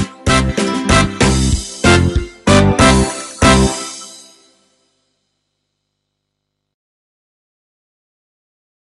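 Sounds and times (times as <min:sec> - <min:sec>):
music beat: 0:00.0 - 0:04.4.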